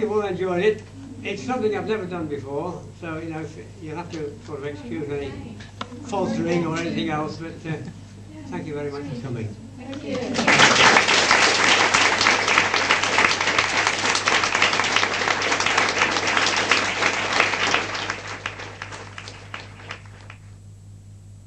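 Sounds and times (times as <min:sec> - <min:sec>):
speech: 0:00.0 - 0:11.2
audience applause and clapping: 0:10.0 - 0:20.5.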